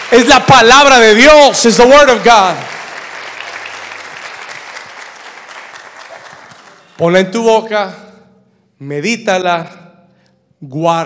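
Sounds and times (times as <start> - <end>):
audience clapping: 0.0 - 7.3
speech: 0.1 - 2.8, 7.0 - 8.0, 8.8 - 9.8, 10.6 - 11.0.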